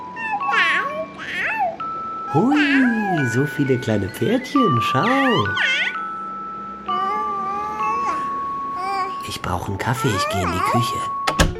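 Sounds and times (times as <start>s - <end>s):
baby crib mobile playing a tinkly electronic tune: 0.0s - 11.5s
young child babbling and squealing: 0.2s - 3.3s, 5.1s - 6.0s, 6.9s - 9.2s, 9.9s - 11.1s
speech: 2.3s - 5.9s, 9.4s - 11.2s.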